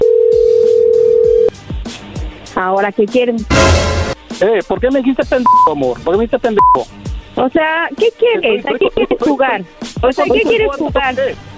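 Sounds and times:
telephone call connecting tone: 0.0 - 1.5
speech: 2.6 - 11.5
laughter: 8.3 - 11.1.

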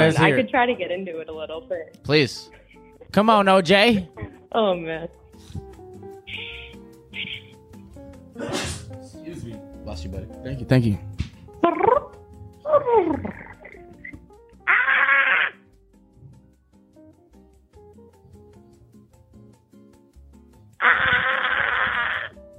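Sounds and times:
speech: 0.0 - 5.6, 8.4 - 12.1, 12.7 - 13.5
vocal imitation of a gecko call: 6.3 - 7.5, 12.7 - 15.6, 20.8 - 22.4.

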